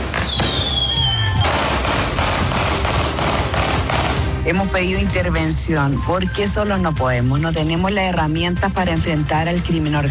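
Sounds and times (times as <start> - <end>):
whistling firework rocket: 0.0 - 1.6
gunshots at street wake: 0.0 - 4.5
speech: 4.5 - 10.0.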